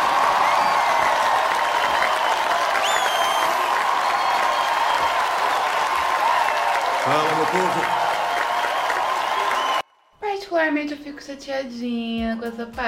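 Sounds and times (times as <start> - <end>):
crowd applauding: 0.0 - 9.8
whistle: 1.8 - 5.6, 8.4 - 9.8
speech: 7.5 - 8.0, 10.7 - 12.8.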